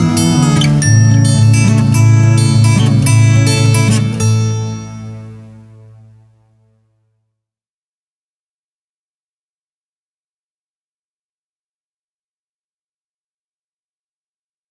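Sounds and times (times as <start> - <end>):
lullaby music: 0.0 - 6.1.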